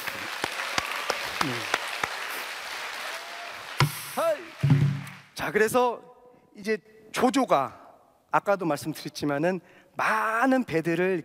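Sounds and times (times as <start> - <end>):
audience applause: 0.0 - 5.4
speech: 1.4 - 1.8, 5.4 - 11.2.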